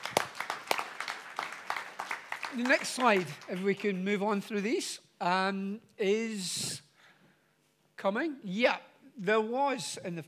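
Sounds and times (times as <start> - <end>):
small audience applause: 0.0 - 4.3
speech: 2.5 - 6.8, 8.0 - 10.2.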